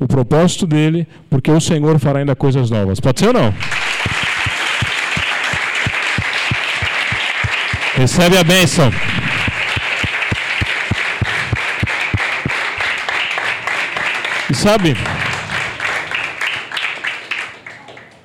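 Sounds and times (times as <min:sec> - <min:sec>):
speech: 0:00.0 - 0:04.2, 0:08.0 - 0:09.5, 0:14.5 - 0:15.3
audience applauding: 0:03.5 - 0:18.2.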